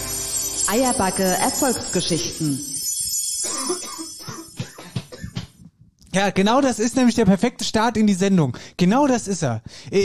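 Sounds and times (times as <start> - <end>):
speech: 0.7 - 2.7, 6.1 - 10.0
man coughing: 3.4 - 5.6.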